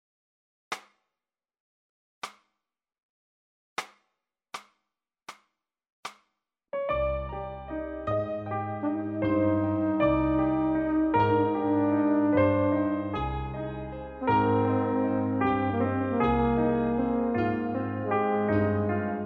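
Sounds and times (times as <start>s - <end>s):
piano playing in C minor: 6.8s - 19.2s
reference trumpet: 8.7s - 13.3s, 14.2s - 19.2s.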